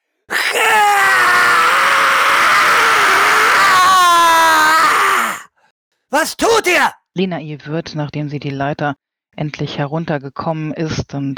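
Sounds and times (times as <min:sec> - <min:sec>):
terrible scream: 0:00.3 - 0:05.5, 0:06.2 - 0:07.0
speech: 0:06.2 - 0:11.3.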